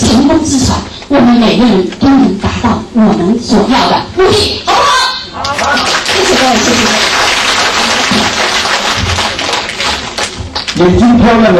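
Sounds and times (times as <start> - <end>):
speech: 1.3 - 4.8, 6.5 - 7.2, 10.8 - 11.5
audience applause: 5.5 - 10.8.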